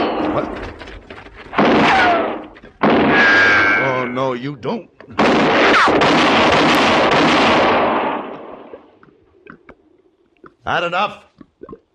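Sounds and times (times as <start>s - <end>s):
speech: 0.4s - 0.7s, 4.2s - 6.8s, 10.6s - 11.7s
gunshot in a western shootout: 1.5s - 3.8s, 5.2s - 8.8s.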